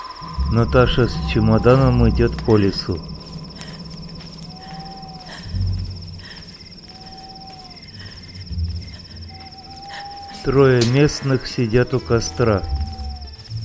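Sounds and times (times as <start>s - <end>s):
soft owl-like calls in a forest: 0.0s - 13.4s
high-pitched insect drone in a forest: 0.0s - 13.6s
low thumps: 0.2s - 9.6s
speech: 0.5s - 3.1s, 10.4s - 12.8s.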